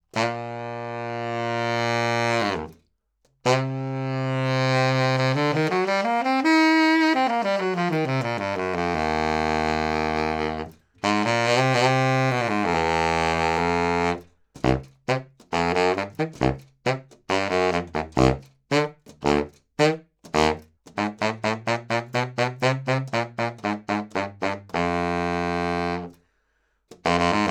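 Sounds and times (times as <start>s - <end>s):
baritone saxophone: 0.1s - 2.8s, 3.4s - 26.2s, 26.9s - 27.5s.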